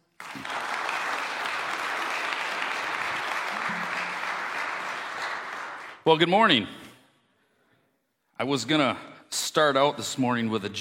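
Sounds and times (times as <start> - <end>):
audience applause greeting a guest speaker at a church service: 0.0 - 6.0
speech: 6.1 - 6.8, 8.4 - 10.7.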